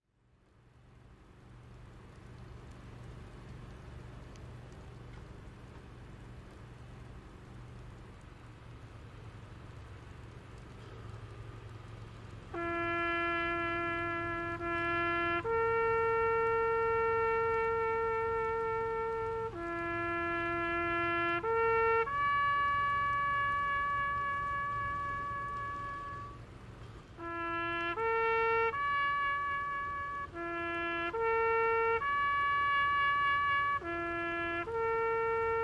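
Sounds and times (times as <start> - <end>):
US Army bugler playing a bugle call: 12.5 - 35.6.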